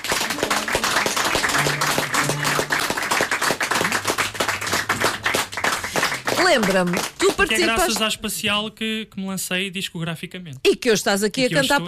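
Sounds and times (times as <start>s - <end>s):
audience applause: 0.0s - 8.1s
speech: 6.5s - 11.8s.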